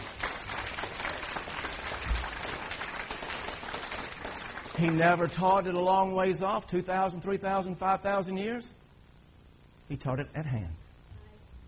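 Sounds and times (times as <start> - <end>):
audience applause: 0.0 - 5.4
speech: 4.8 - 8.8, 9.9 - 10.8.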